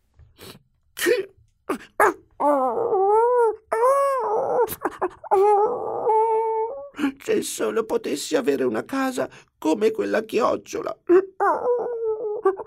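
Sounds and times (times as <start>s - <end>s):
dog sobbing and whimpering: 1.7s - 7.0s, 11.1s - 12.6s
speech: 1.8s - 2.8s, 7.3s - 11.2s.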